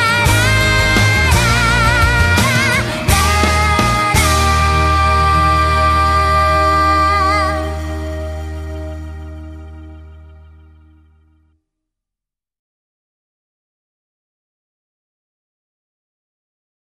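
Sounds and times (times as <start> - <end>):
acoustic music: 0.0 - 11.5.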